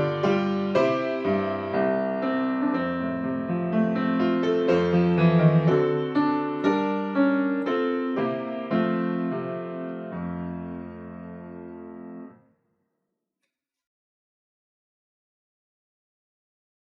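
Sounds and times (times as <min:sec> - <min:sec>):
piano: 0:00.0 - 0:12.4.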